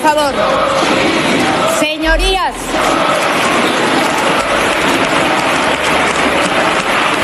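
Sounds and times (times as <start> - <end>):
speech: 0.1 - 1.1
parliamentary applause ovation: 1.5 - 7.2.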